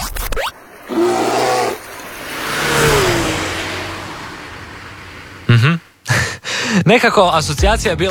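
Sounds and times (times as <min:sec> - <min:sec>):
racing car engine revving at the Grobnik track: 0:00.5 - 0:06.2
vocal-like harmonic burst: 0:00.8 - 0:04.2
bear roar: 0:00.9 - 0:03.7
speech: 0:06.8 - 0:08.0.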